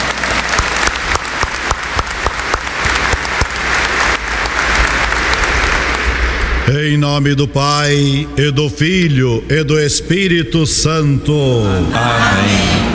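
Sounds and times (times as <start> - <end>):
crowd applause: 0.0 - 6.5
speech: 6.7 - 12.9.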